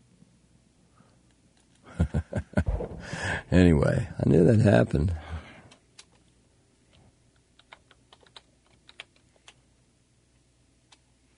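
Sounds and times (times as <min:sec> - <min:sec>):
speech: 0:03.5 - 0:05.2
typing on a computer keyboard: 0:07.4 - 0:09.6.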